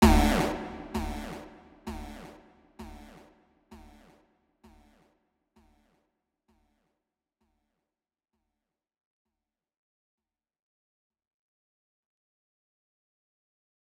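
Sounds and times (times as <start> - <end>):
plucked note: 0.0 - 3.2.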